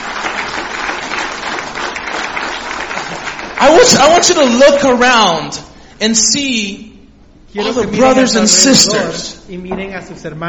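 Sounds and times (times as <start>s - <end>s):
audience applause: 0.0s - 4.3s
speech: 3.6s - 6.9s, 7.6s - 10.4s.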